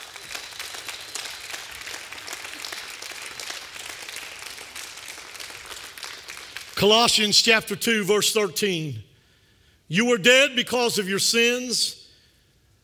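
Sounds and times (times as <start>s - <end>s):
audience clapping hands in praise: 0.0s - 7.8s
speech: 6.8s - 9.1s, 9.9s - 12.0s.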